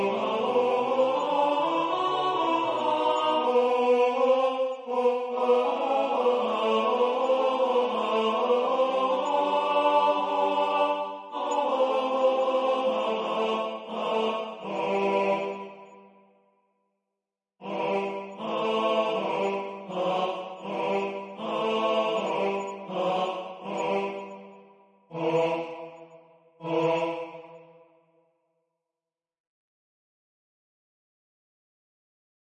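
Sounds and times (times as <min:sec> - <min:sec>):
tenor singing: 0:00.0 - 0:15.9, 0:17.6 - 0:27.7.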